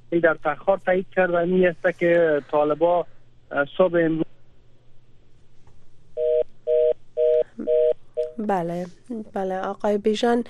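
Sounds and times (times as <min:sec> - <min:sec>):
low hum: 0:00.0 - 0:10.4
speech: 0:00.1 - 0:04.3, 0:08.4 - 0:10.4
repeating telephone tone after a call is cut off: 0:06.2 - 0:08.4.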